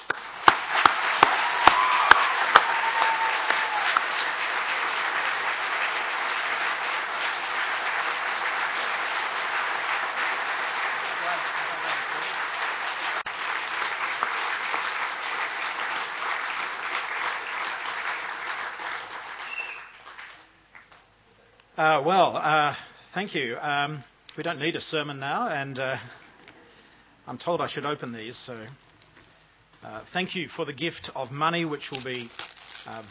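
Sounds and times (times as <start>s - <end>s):
loud round of applause in church: 0.0s - 20.9s
speech: 21.8s - 26.2s, 27.3s - 28.8s, 29.8s - 33.0s.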